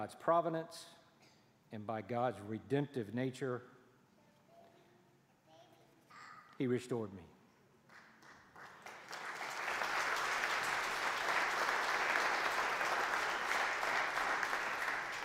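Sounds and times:
speech: 0:00.0 - 0:01.0, 0:01.7 - 0:03.8, 0:06.6 - 0:07.3
audience applause: 0:08.0 - 0:15.2.

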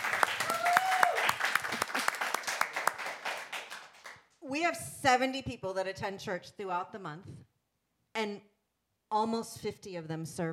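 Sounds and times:
audience applause: 0:00.0 - 0:04.2
speech: 0:04.6 - 0:07.5, 0:08.2 - 0:08.5, 0:09.1 - 0:10.5.

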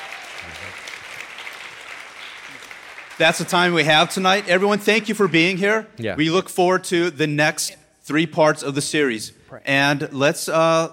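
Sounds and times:
church congregation applauding two pastors at the close of an evening service: 0:00.0 - 0:05.8
speech: 0:03.2 - 0:10.9.

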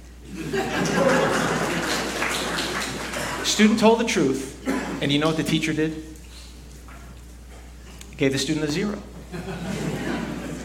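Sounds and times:
laughter: 0:00.3 - 0:03.4, 0:09.2 - 0:10.6
audience clapping: 0:00.6 - 0:03.8
speech: 0:03.5 - 0:06.2, 0:08.2 - 0:09.8.

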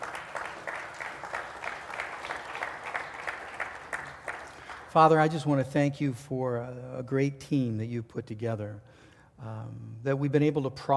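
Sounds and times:
audience applause: 0:00.0 - 0:05.0
speech: 0:04.9 - 0:10.9.

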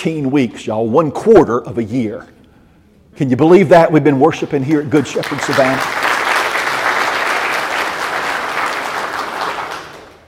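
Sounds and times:
speech: 0:00.0 - 0:02.4, 0:03.2 - 0:06.0
audience applause: 0:05.0 - 0:10.2.

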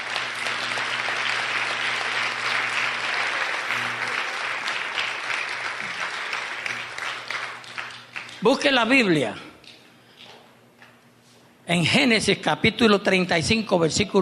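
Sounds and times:
sustained applause from a large audience: 0:00.0 - 0:08.4
low steady hum: 0:00.0 - 0:13.5
speech: 0:08.4 - 0:09.5, 0:11.7 - 0:14.2.

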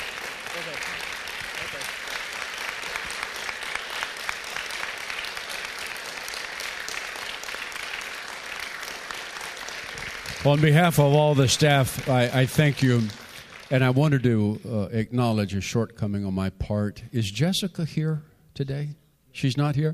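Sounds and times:
audience applause: 0:00.0 - 0:14.3
speech: 0:10.4 - 0:19.9.

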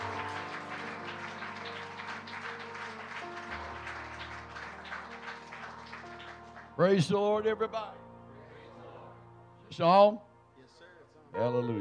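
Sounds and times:
audience clapping hands: 0:00.0 - 0:07.1
speech: 0:06.8 - 0:08.1, 0:09.8 - 0:10.3, 0:11.3 - 0:11.7.

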